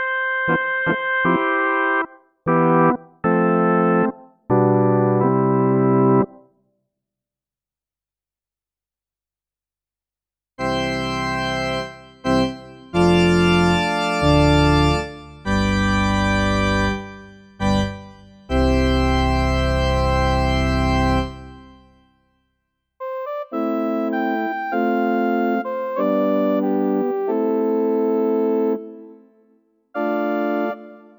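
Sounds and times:
organ: 0.0 - 6.4, 10.6 - 21.9, 23.0 - 29.1, 30.0 - 31.1.

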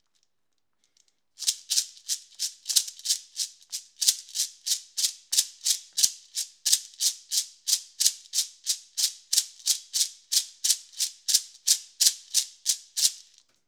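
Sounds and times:
shaker: 0.0 - 13.5.

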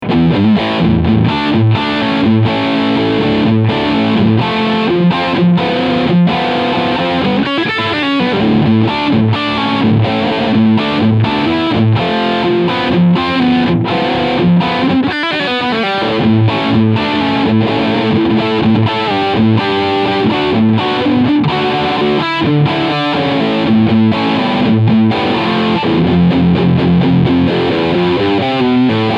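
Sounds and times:
80s style distorted riff: 0.0 - 29.1.

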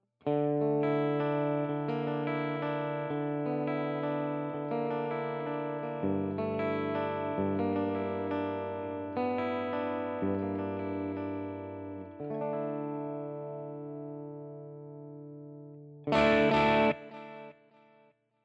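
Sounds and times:
Line 6 Catalyst amp chime tone DI out: 0.3 - 17.6.

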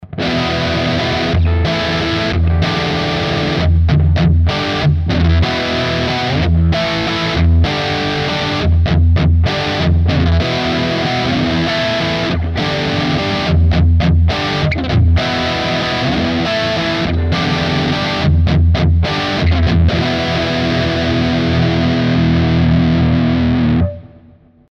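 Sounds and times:
Framus Diablo Pro high-gain rhythm guitar on split bridge pickup: 0.0 - 24.7.

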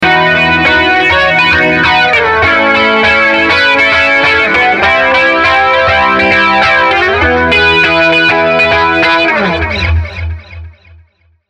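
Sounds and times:
guitar with NI Guitar Rig 2.2 flanger effect: 0.0 - 11.3.

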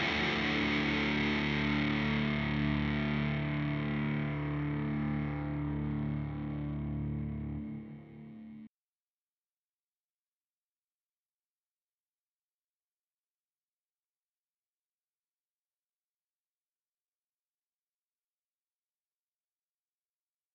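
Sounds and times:
Walrus Audio Melee effects pedal sound: 0.0 - 8.7.

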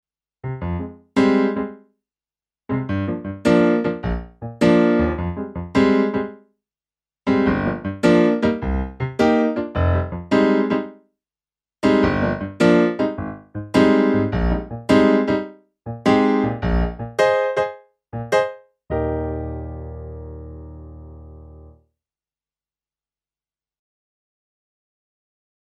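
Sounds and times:
grand piano: 0.4 - 1.8, 2.7 - 6.4, 7.3 - 11.0, 11.8 - 21.8.

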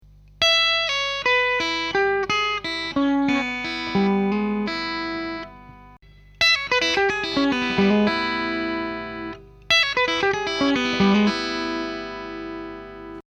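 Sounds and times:
musical lick: 0.2 - 13.2.

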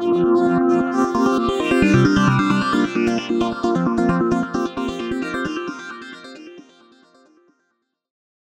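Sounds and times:
arpeggios: 0.0 - 6.4.

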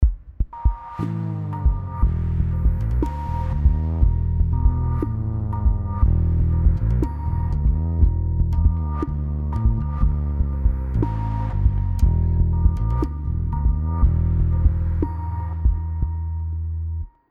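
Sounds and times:
low stereo compressed synth texture with 350 filter: 0.6 - 17.1.

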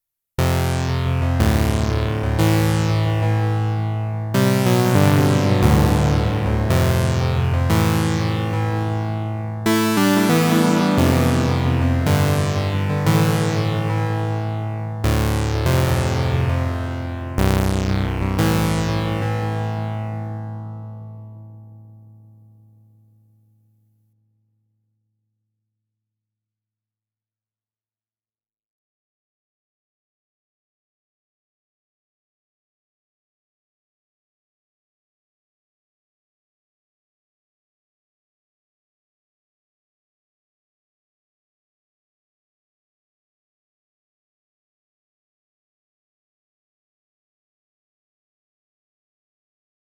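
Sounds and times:
bass: 0.4 - 22.4.

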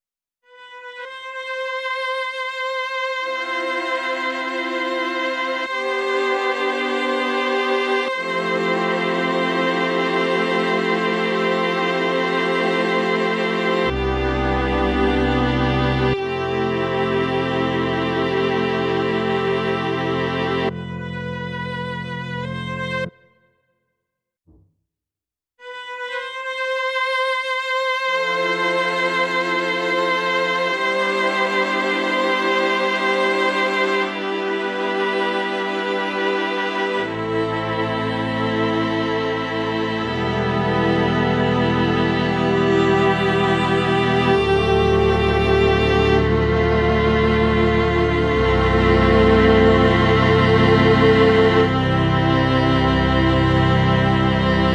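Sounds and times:
strings: 0.5 - 23.3, 25.6 - 54.7.

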